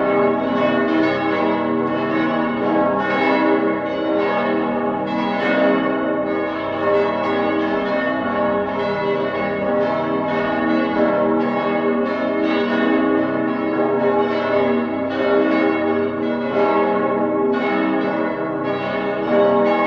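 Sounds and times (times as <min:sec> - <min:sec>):
cathedral bells ringing in partial peal on G sharp: 0:00.0 - 0:19.8.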